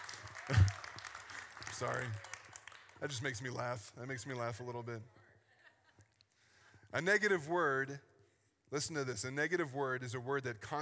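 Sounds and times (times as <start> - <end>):
audience clapping together: 0.0 - 3.8
speech: 1.8 - 2.3, 3.0 - 5.2, 6.9 - 8.1, 8.7 - 10.7.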